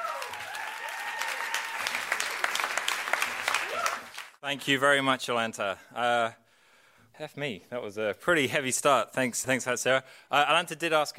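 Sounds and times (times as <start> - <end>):
audience applause as a speaker is introduced: 0.0 - 4.4
speech: 4.5 - 6.4, 7.2 - 11.1.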